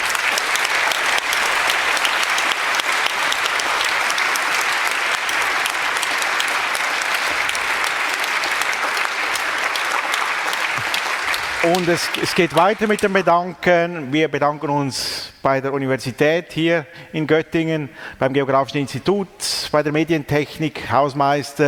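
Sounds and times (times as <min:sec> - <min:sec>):
audience applause: 0:00.0 - 0:13.6
speech: 0:11.7 - 0:21.6.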